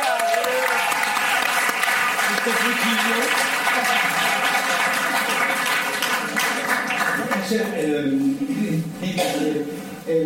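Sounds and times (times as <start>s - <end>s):
audience applause: 0.0s - 7.5s
speech: 2.4s - 4.1s, 7.5s - 10.2s.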